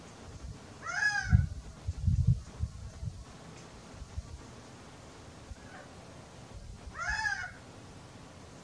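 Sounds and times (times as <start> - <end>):
wild quail calling: 0.8 - 1.5, 6.9 - 7.6.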